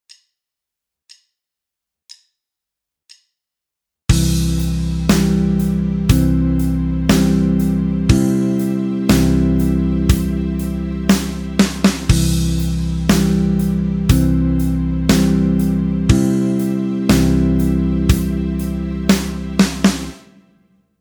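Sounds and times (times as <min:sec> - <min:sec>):
backing music: 0:04.1 - 0:20.7.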